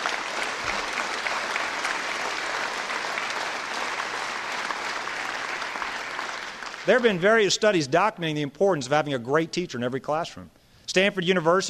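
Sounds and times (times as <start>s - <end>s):
audience applause: 0.0s - 7.3s
speech: 6.8s - 11.6s.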